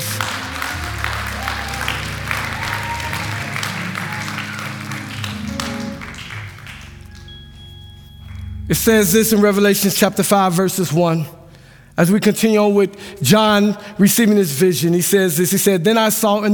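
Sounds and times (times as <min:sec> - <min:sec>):
audience applause: 0:00.0 - 0:07.7
speech: 0:08.7 - 0:11.4, 0:12.0 - 0:16.5.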